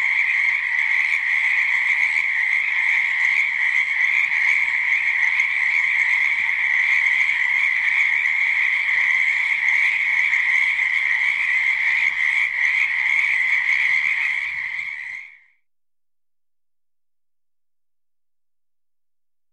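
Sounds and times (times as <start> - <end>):
many frogs croaking in a swamp: 0.0 - 15.5.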